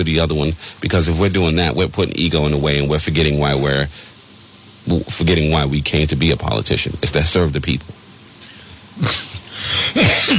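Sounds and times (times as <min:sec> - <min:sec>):
speech: 0:00.0 - 0:04.1, 0:04.8 - 0:08.0, 0:09.0 - 0:09.2, 0:10.0 - 0:10.3
harsh breathy coughing: 0:08.4 - 0:10.3.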